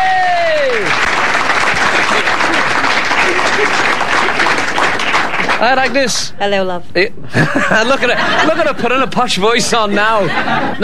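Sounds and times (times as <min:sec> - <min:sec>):
round of applause: 0:00.0 - 0:06.0
laughter: 0:01.8 - 0:04.8, 0:07.3 - 0:10.8
speech: 0:05.6 - 0:10.8.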